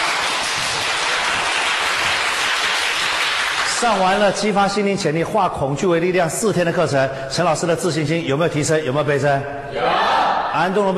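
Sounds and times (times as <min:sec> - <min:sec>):
audience applause: 0:00.0 - 0:04.0
speech: 0:03.8 - 0:10.9.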